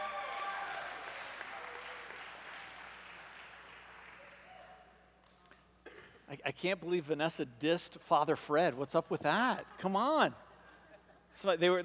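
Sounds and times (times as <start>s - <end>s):
audience applauding for children: 0.0s - 4.4s
speech: 6.3s - 10.4s, 11.3s - 11.8s.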